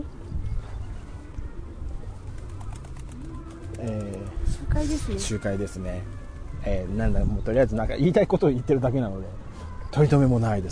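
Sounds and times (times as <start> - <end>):
pigeon flying overhead outdoors: 2.1 - 5.4
speech: 4.6 - 10.7.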